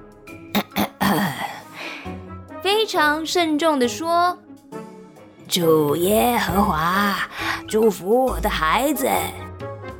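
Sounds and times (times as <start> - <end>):
storyteller voicing a father clearing his throat: 0.6 - 1.6
speech: 2.8 - 4.4, 5.5 - 9.4.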